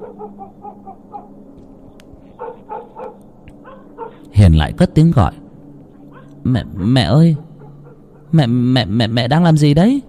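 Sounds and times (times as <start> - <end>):
black dog barking loudly and repeatedly: 0.0 - 1.4, 2.4 - 4.2, 7.4 - 8.3
speech: 4.4 - 5.4, 6.4 - 7.4, 8.3 - 10.0.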